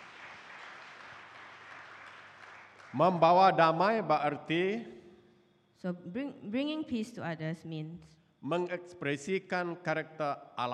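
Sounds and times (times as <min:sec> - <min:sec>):
audience applause: 0:00.0 - 0:03.4
speech: 0:02.9 - 0:05.0, 0:05.8 - 0:10.7.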